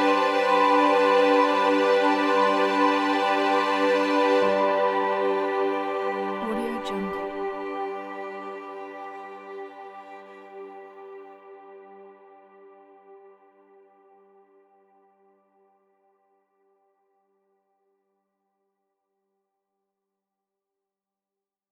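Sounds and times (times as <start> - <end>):
cinematic background soundscape: 0.0 - 14.0.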